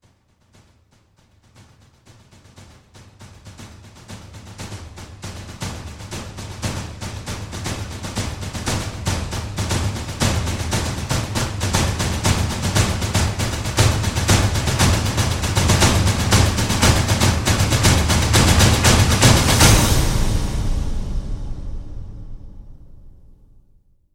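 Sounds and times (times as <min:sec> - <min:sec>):
drums: 0:00.0 - 0:23.7.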